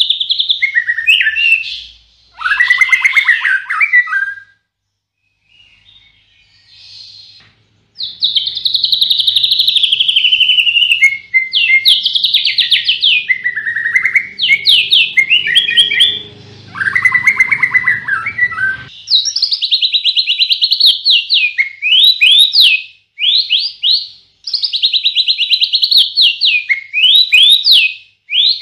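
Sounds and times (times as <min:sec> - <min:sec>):
White-rumped shama song with rapid whistles and trills: 0:00.0 - 0:04.6, 0:05.2 - 0:28.6
low hum: 0:11.2 - 0:18.9.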